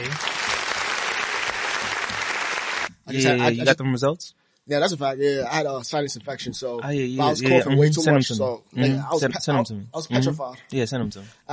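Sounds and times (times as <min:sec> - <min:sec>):
round of applause: 0:00.0 - 0:02.9
speech: 0:03.1 - 0:11.5.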